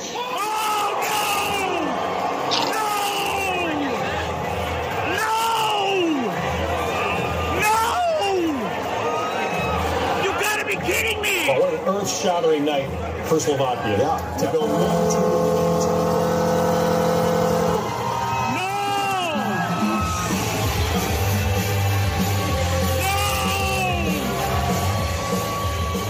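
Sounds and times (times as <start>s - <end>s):
crowd roaring and cheering: 0.0s - 26.0s
hockey goal horn: 14.4s - 18.4s
goal song music: 14.5s - 26.0s.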